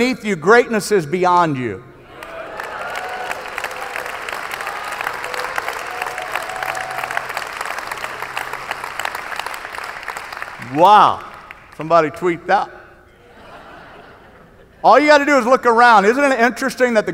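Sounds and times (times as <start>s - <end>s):
speech: 0.0s - 1.9s, 10.8s - 12.8s, 14.8s - 17.1s
audience applause: 2.2s - 11.8s
laughter: 13.2s - 14.8s.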